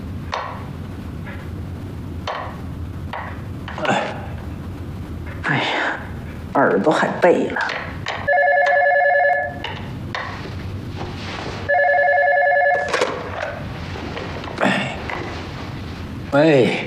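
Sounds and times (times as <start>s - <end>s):
people talking: 5.4s - 7.8s, 14.6s - 15.1s, 16.3s - 16.8s
telephone ringing: 8.2s - 9.8s, 11.7s - 13.6s
people moving around: 9.8s - 16.3s.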